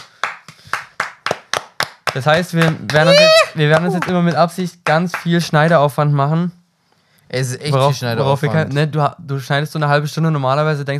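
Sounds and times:
applause: 0:00.0 - 0:05.5
speech: 0:02.1 - 0:06.6, 0:07.3 - 0:10.9.

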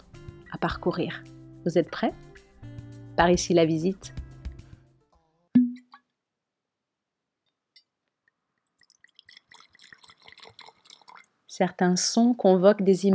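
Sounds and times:
speech: 0:00.6 - 0:02.3, 0:03.2 - 0:04.2, 0:11.6 - 0:13.1
amber liquid poured from bottle into round-bellied glass: 0:08.6 - 0:11.4.

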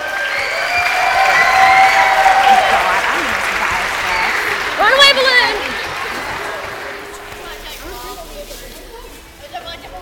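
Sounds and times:
voices and cheers: 0:00.0 - 0:07.6
audience applause: 0:00.0 - 0:07.8.

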